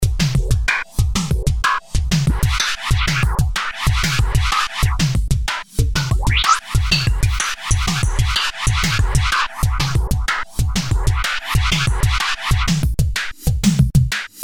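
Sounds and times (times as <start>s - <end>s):
drum: 0.0s - 14.4s.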